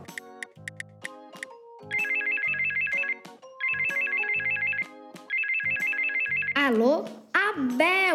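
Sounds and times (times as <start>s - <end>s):
telephone ringtone for outgoing call: 1.8s - 6.6s
speech: 6.6s - 8.1s.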